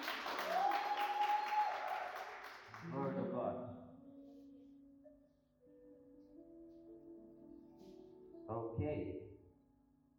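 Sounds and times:
audience clapping: 0.0 - 3.3.

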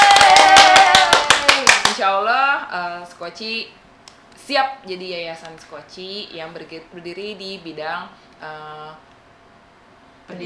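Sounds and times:
crowd clapping: 0.0 - 2.0
speech: 2.1 - 3.9, 4.5 - 9.1, 10.3 - 10.4.

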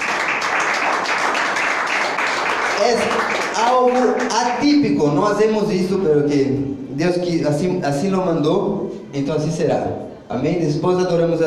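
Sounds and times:
church congregation applauding a sister before she preaches: 0.0 - 4.9
speech: 2.8 - 11.4.

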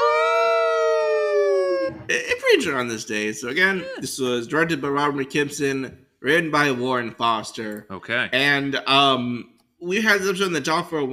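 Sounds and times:
person howling: 0.0 - 2.1, 3.6 - 4.1
speech: 2.1 - 11.1.

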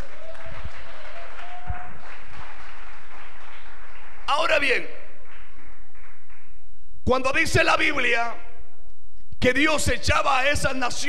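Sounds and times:
audience clapping hands: 0.0 - 6.7
speech: 4.3 - 5.0, 7.1 - 8.4, 9.4 - 11.0.

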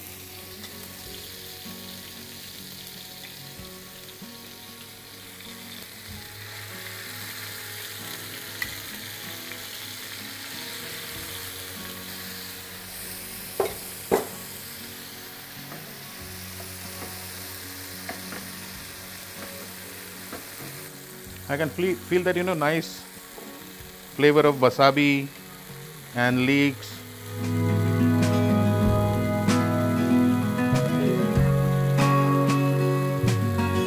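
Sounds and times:
fish pan-searing in hot oil: 0.0 - 33.8
speech: 21.5 - 23.0, 24.2 - 25.4, 26.1 - 26.9.

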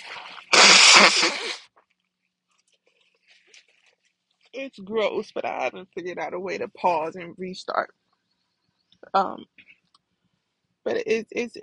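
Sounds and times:
person blowing nose: 0.0 - 1.6
speech: 1.0 - 1.6, 4.6 - 8.0, 9.0 - 9.7, 10.8 - 11.6.

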